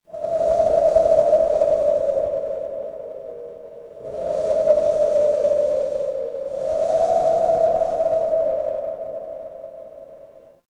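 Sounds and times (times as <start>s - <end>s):
horror wind whisper: 0.1s - 10.6s.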